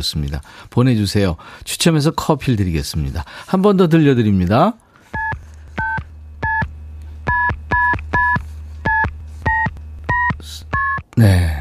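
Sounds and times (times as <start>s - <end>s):
speech: 0.0s - 4.8s, 11.2s - 11.5s
telephone keypad dialing tones: 5.1s - 11.2s.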